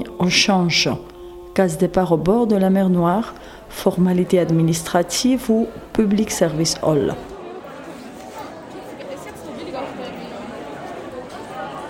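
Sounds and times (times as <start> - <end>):
crowd chatter in a public service hall: 0.0 - 11.8
speech: 0.2 - 7.3.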